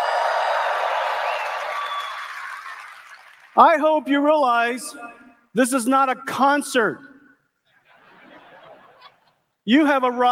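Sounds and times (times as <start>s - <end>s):
audience applause at the GTC developers conference: 0.0s - 3.6s
speech: 3.6s - 7.1s, 9.6s - 10.3s
laughter: 7.7s - 9.6s.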